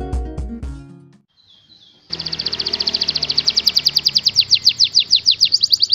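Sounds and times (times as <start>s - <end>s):
contest champion canary singing fast trills: 1.3s - 5.9s.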